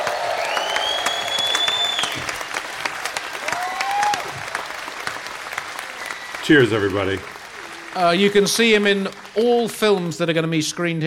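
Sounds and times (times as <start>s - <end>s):
live audience applause: 0.0s - 11.0s
high whistles: 0.4s - 2.8s
speech: 6.5s - 7.4s, 8.0s - 11.0s.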